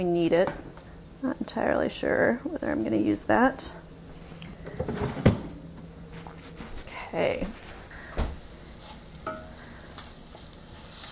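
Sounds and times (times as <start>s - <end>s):
speech: 0.0s - 3.8s, 7.1s - 7.6s
bacon sizzling in a pan: 8.4s - 11.1s.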